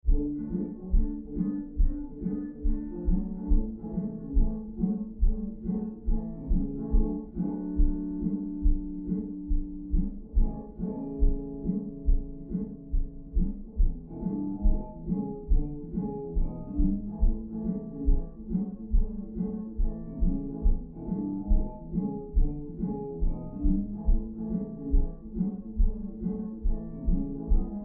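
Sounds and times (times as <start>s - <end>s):
country music: 0.0s - 27.8s.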